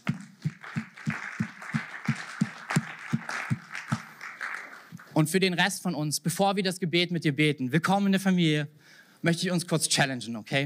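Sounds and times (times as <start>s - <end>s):
audience applause: 0.0s - 5.1s
speech: 5.2s - 10.6s.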